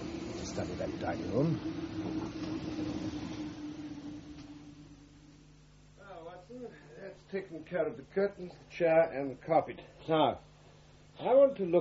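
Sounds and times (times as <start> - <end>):
Chislehurst train arriving: 0.0 - 5.3
speech: 0.6 - 3.6, 6.5 - 10.5, 11.2 - 11.7.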